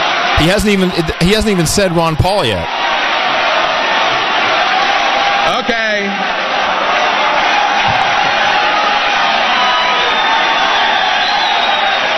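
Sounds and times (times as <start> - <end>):
convention crowd cheering: 0.0 - 12.1
speech: 0.4 - 2.8
whistle-like whoop: 9.4 - 12.1.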